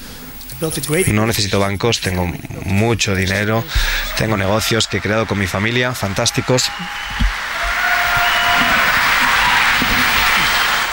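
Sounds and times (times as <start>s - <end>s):
speech: 0.6s - 7.3s
crowd ovation applause for Donald Trump: 3.6s - 10.9s.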